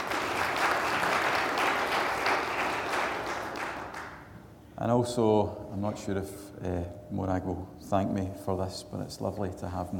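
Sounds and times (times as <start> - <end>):
audience applause: 0.0 - 4.2
speech: 4.8 - 9.9.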